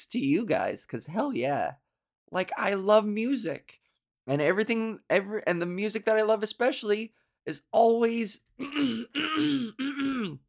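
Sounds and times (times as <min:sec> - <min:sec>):
speech: 0:00.0 - 0:10.4
throat clearing: 0:08.6 - 0:10.4.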